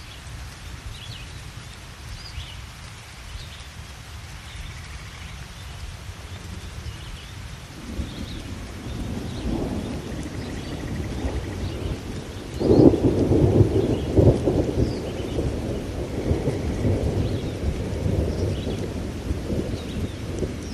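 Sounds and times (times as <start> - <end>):
soft rain tapping against a window: 0.0 - 20.7
low thunder rumbling: 7.7 - 20.7.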